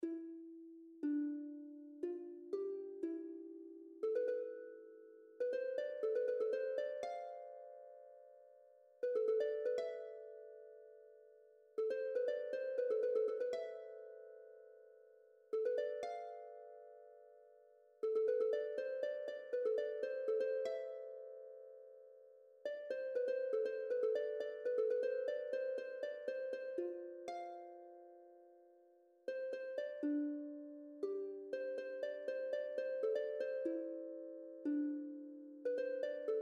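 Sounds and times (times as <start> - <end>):
harp: 0.0 - 36.3.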